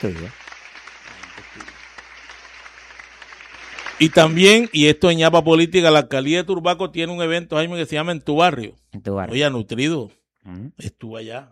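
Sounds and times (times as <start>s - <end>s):
speech: 0.0s - 0.4s, 4.0s - 11.5s
applause: 0.0s - 5.7s.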